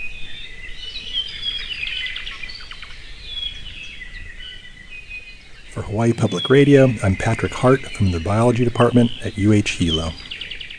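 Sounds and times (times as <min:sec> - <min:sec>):
hiss: 0:00.0 - 0:10.7
Hawaiian thrush singing: 0:05.7 - 0:10.4
speech: 0:05.8 - 0:10.2.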